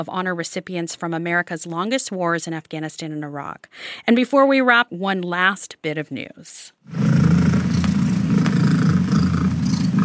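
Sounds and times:
speech: 0.0 - 7.3
domestic cat's record-loud purr: 6.9 - 10.0.

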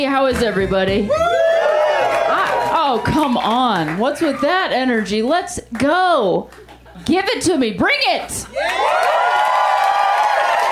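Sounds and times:
speech: 0.0 - 1.4, 2.7 - 9.5
crowd whooping and cheering: 1.0 - 4.4, 8.5 - 10.7.

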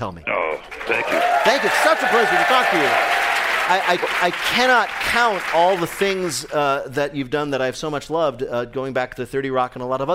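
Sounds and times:
speech: 0.0 - 10.1
studio audience applause: 0.6 - 6.8.

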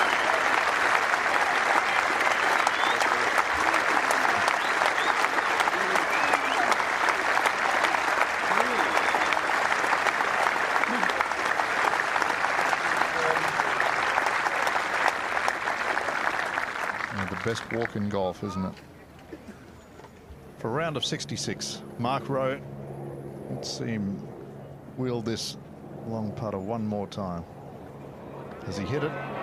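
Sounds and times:
crowd cheers and whoops: 0.0 - 12.0, 28.8 - 29.4
golf crowd applauding: 0.0 - 18.5
speech: 17.5 - 18.9, 20.6 - 22.7, 23.6 - 24.3, 25.0 - 27.6, 28.7 - 29.4.

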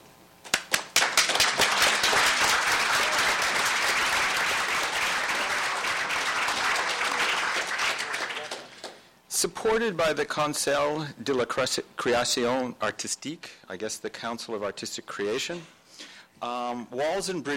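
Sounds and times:
audience applause: 0.6 - 9.1
speech: 9.4 - 15.8, 16.4 - 17.5.

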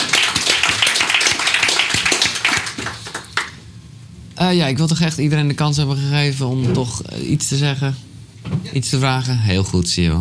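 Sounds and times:
applause: 0.0 - 3.7
speech: 4.4 - 10.1.

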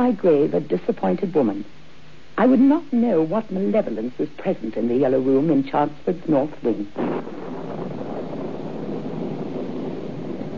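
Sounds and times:
speech: 0.0 - 1.8, 2.4 - 7.7
wind of an approaching storm: 7.0 - 10.5.

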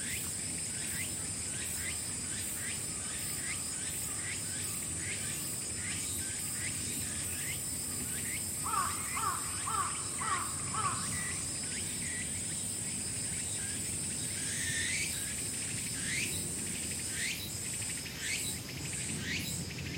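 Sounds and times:
insects chirping with shrill drone: 0.0 - 19.9.

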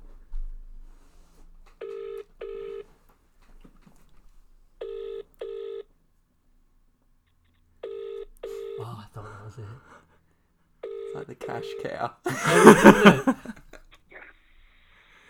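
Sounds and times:
double-pulse phone ringback tone: 1.8 - 2.8, 4.8 - 5.8, 7.8 - 8.8, 10.8 - 11.8
speech: 9.5 - 10.0, 11.2 - 13.6
laughter: 12.3 - 13.8.

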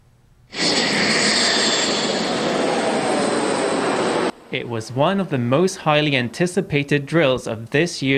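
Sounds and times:
Air Force jet landing or taking off on a roadway: 0.5 - 6.5
speech: 4.5 - 8.1.

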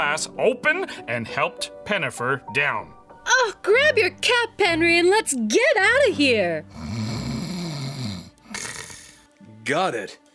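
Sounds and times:
speech: 0.0 - 7.1, 9.7 - 10.2
sleeping guard snoring: 6.6 - 9.3.

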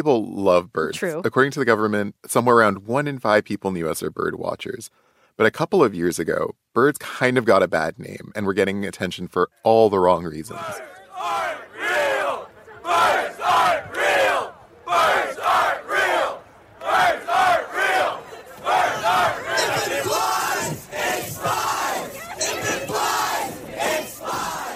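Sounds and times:
speech: 0.0 - 12.2
bird truther protest crowd chanting: 10.5 - 24.7.

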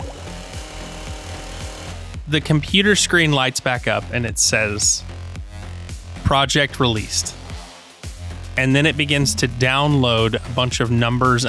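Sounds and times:
chainsaw revving: 0.0 - 2.2
speech: 2.3 - 5.1, 6.3 - 7.4, 8.6 - 11.4.

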